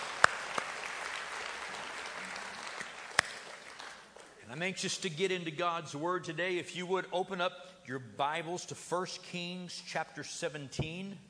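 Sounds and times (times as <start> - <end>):
church congregation clapping to welcome first-time guests: 0.0 - 4.5
speech: 4.5 - 11.2.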